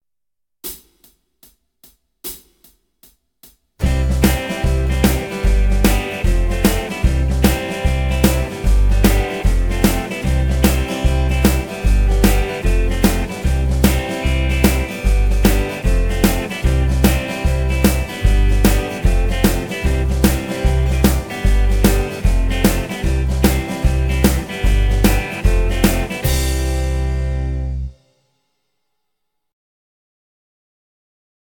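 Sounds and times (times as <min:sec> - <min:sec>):
backing track: 0:03.8 - 0:28.0.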